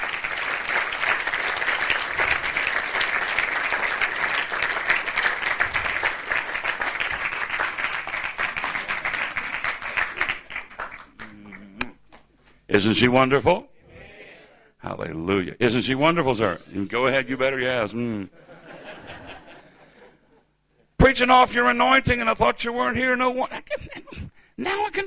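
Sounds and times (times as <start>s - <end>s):
hand clapping: 0.0s - 12.3s
laughter: 8.6s - 10.5s, 18.3s - 20.4s, 23.4s - 24.3s
speech: 12.8s - 13.7s, 15.1s - 18.5s, 21.1s - 23.6s, 24.6s - 25.0s.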